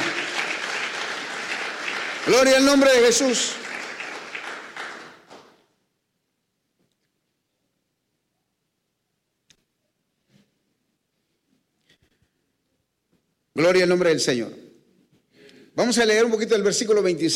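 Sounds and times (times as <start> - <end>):
audience applause: 0.0 - 5.6
speech: 2.2 - 3.6, 13.6 - 14.7, 15.8 - 17.3.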